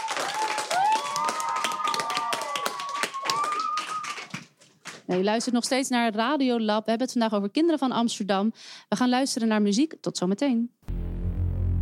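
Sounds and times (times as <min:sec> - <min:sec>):
group clapping for the experts: 0:00.0 - 0:05.8
speech: 0:05.1 - 0:10.8.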